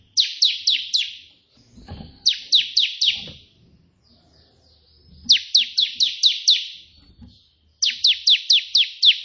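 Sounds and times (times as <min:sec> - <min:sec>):
prinia singing buzzy notes: 0:00.0 - 0:03.4, 0:04.0 - 0:09.2.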